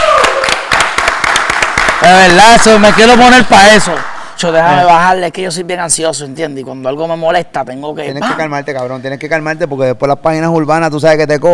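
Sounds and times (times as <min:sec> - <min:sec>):
applause, hand clapping: 0:00.0 - 0:04.2
speech: 0:02.1 - 0:11.5.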